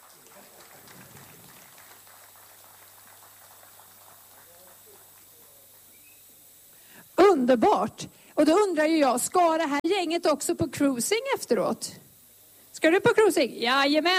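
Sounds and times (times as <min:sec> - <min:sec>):
crowd applauding: 0:00.0 - 0:06.0
speech: 0:07.4 - 0:12.0, 0:12.8 - 0:14.1.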